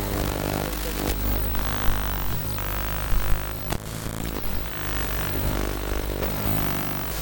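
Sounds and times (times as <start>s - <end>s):
VHS tape noises: 0.1s - 7.1s.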